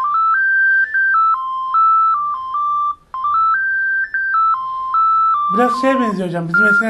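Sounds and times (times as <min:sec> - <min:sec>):
mobile phone ringtone: 0:00.0 - 0:06.8
speech: 0:05.6 - 0:06.8.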